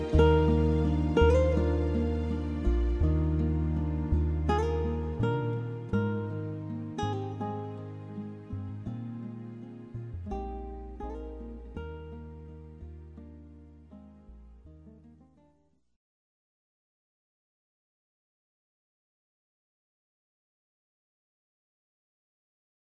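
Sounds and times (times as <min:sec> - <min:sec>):
acoustic praise instrumental music: 0:00.0 - 0:13.4.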